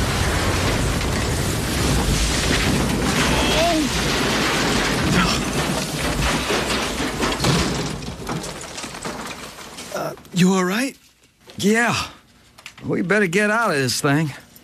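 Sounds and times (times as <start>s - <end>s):
small plane crashing into plowed field: 0.0s - 9.8s
speech: 10.4s - 11.0s, 11.6s - 12.2s, 12.8s - 14.4s.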